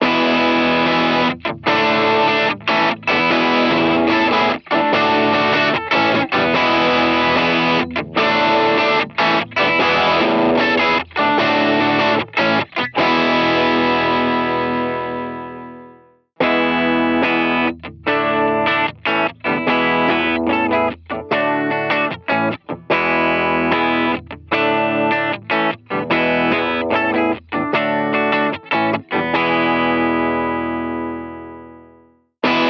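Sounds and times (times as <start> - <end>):
guitar: 0.0 - 32.6.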